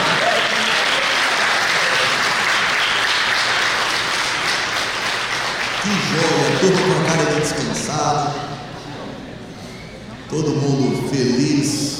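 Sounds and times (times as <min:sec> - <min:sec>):
audience applauding: 0:00.0 - 0:07.7
speech: 0:06.6 - 0:08.5, 0:10.3 - 0:11.9.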